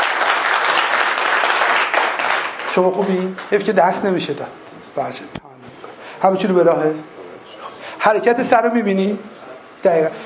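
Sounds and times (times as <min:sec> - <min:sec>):
audience applauding a guest: 0:00.0 - 0:03.6
speech: 0:02.8 - 0:05.5, 0:06.2 - 0:07.1, 0:08.0 - 0:10.2.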